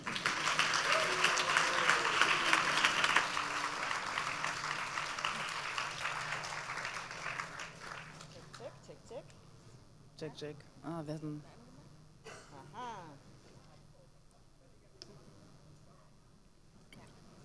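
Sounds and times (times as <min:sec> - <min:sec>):
crowd applause: 0:00.0 - 0:08.7
speech: 0:10.3 - 0:11.6.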